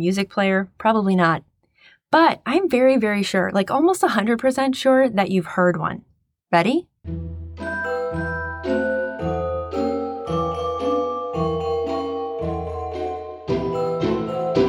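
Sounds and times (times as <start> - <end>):
speech: 0.0 - 1.5, 2.1 - 8.8
celesta playing bell-like melody: 7.1 - 14.6.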